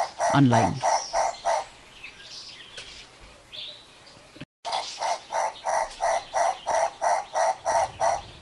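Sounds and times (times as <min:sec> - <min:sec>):
Knysna turaco calling: 0:00.0 - 0:01.8, 0:04.7 - 0:08.4
speech: 0:00.3 - 0:00.9.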